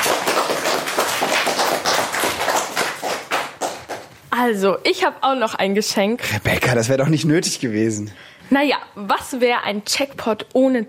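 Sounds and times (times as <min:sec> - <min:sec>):
applause: 0:00.0 - 0:04.2
speech: 0:04.4 - 0:10.8.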